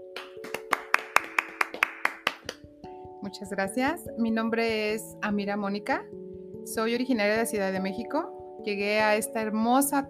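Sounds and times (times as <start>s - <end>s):
loud applause: 0.4s - 2.5s
speech: 3.2s - 10.0s.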